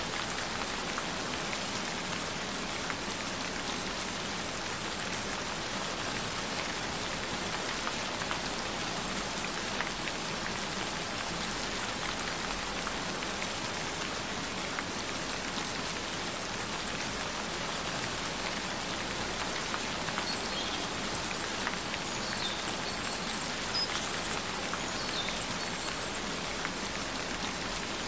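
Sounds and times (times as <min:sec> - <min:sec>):
gentle rain: 0:00.0 - 0:28.0.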